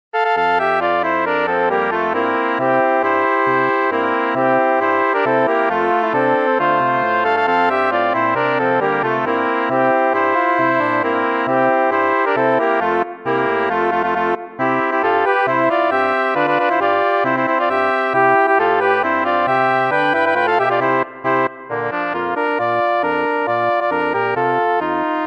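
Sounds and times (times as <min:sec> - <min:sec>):
polka music: 0:00.2 - 0:25.2.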